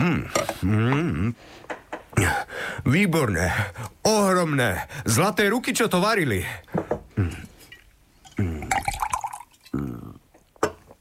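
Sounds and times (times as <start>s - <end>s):
speech: 0.1s - 7.4s
wine being poured: 7.7s - 9.9s.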